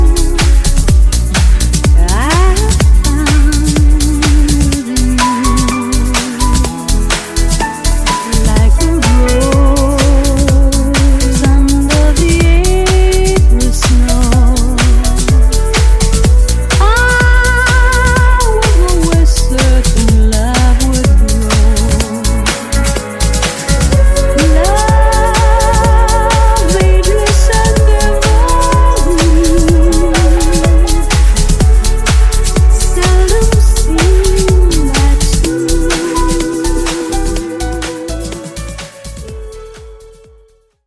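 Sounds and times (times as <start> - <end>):
funk bootleg music: 0.0 - 40.8.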